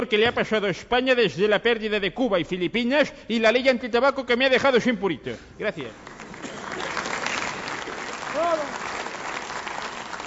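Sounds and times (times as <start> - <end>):
speech: 0.0 - 6.2, 8.4 - 8.8
audience applause: 6.0 - 10.2.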